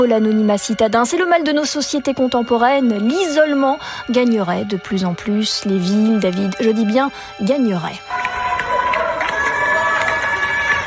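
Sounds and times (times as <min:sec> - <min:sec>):
speech: 0:00.0 - 0:08.3
people cheering from their windows: 0:08.0 - 0:10.8
people clapping from their windows for healthcare workers in France: 0:08.0 - 0:10.8.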